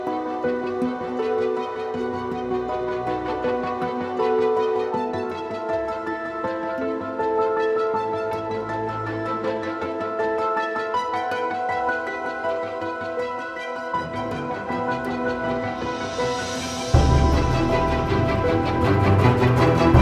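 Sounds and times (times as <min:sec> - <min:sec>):
fast strings: 0:00.0 - 0:20.0.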